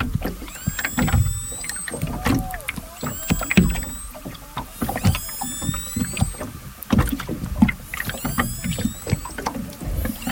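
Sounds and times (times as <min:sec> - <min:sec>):
rumbling crackling underwater water noise: 0:00.0 - 0:10.3
underwater clicks: 0:00.0 - 0:10.3
orca distress calls underwater: 0:00.5 - 0:06.5, 0:08.1 - 0:09.5, 0:10.2 - 0:10.3.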